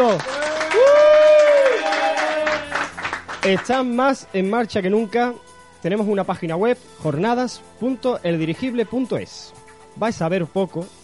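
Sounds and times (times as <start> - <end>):
speech: 0.0 - 0.9, 3.4 - 11.0
audience applause: 0.0 - 3.7.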